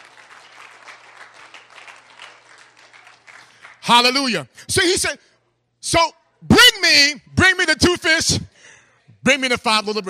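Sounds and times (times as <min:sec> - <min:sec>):
audience clapping hands: 0:00.0 - 0:04.1
speech: 0:03.9 - 0:08.5, 0:09.2 - 0:10.0.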